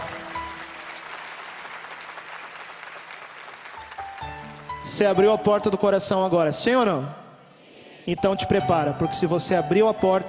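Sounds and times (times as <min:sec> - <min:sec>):
crowd applauding: 0:00.0 - 0:04.9
speech: 0:04.8 - 0:07.2, 0:08.0 - 0:10.2.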